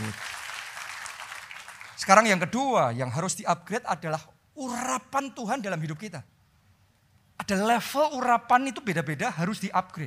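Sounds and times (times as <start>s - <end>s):
audience applause: 0.0s - 2.0s
speech: 2.0s - 6.3s, 7.4s - 10.0s.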